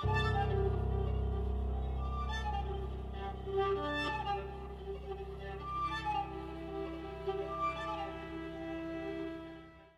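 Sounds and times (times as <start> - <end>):
piano quartet playing: 0.0 - 9.3.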